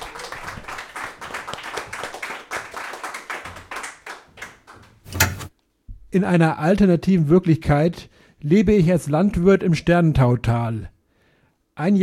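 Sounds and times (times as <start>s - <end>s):
crowd clapping: 0.0s - 5.0s
speech: 6.1s - 10.9s, 11.8s - 12.0s.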